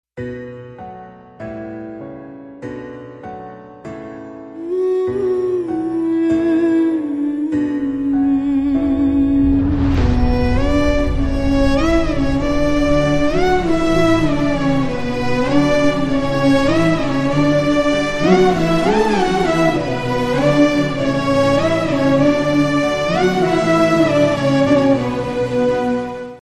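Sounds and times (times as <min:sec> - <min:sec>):
background music ringtone: 0:00.2 - 0:26.4.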